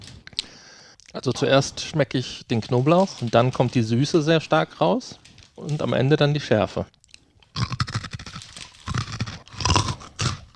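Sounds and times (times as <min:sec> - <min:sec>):
speech: 0:01.2 - 0:07.0
crunching crispy fried rice cake chunks seasoned with garlic and chili: 0:02.5 - 0:10.5.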